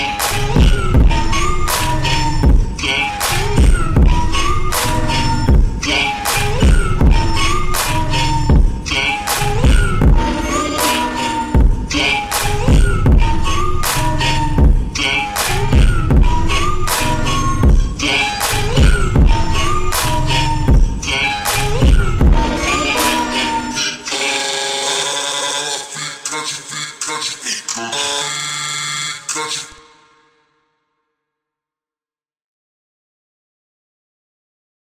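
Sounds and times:
slowed reverb montagem music: 0:00.3 - 0:25.0.

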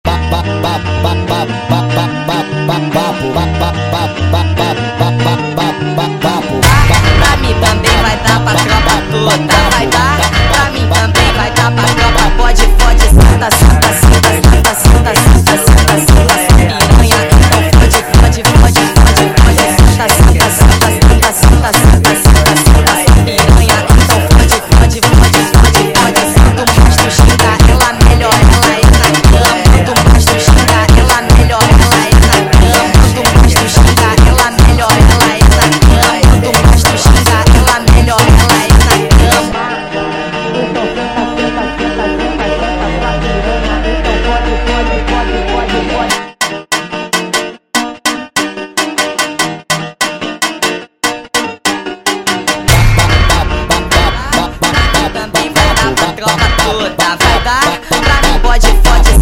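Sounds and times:
sped up funk music: 0:00.1 - 0:59.2.

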